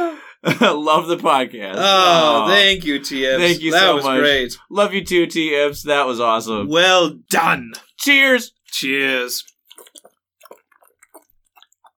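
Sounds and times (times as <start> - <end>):
speech: 0.4 - 9.5
loud drinking from a water bottle: 9.1 - 11.9.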